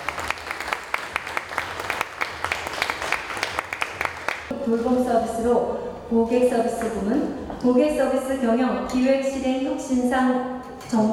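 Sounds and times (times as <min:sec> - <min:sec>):
audience applauding: 0:00.0 - 0:04.5
speech: 0:04.7 - 0:11.1.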